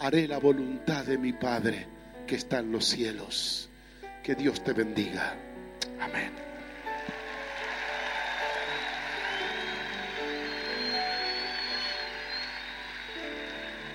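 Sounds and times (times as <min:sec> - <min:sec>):
speech: 0:00.0 - 0:06.5
audience applause: 0:06.6 - 0:13.9.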